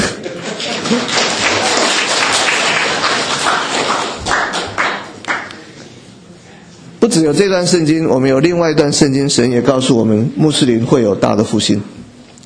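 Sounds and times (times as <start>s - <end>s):
audience clapping: 0.0s - 5.6s
speech: 0.9s - 1.2s, 7.2s - 12.0s.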